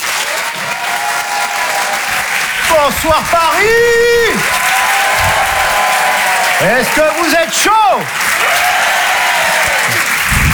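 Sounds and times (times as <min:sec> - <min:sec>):
audience at a comedy club applauding a comedian: 0:00.0 - 0:10.5
speech: 0:02.7 - 0:04.6, 0:06.6 - 0:08.7.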